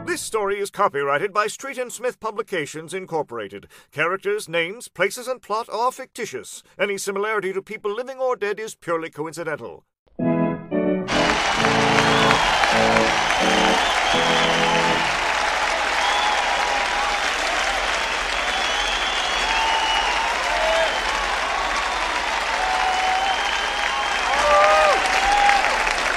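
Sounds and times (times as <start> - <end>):
speech: 0.2 - 9.9
large audience applause and cheering: 11.1 - 26.1.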